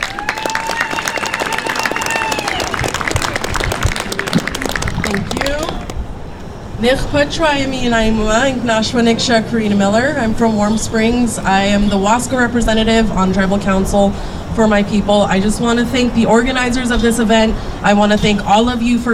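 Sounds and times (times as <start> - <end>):
crowd whoops and cheers: 0.0 - 4.7
crowd applause: 0.0 - 6.0
speech: 6.8 - 19.1.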